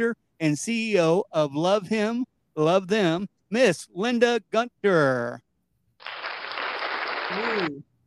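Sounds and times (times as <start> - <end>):
speech: 0.0 - 5.4, 7.3 - 7.9
crowd clapping: 6.0 - 7.8.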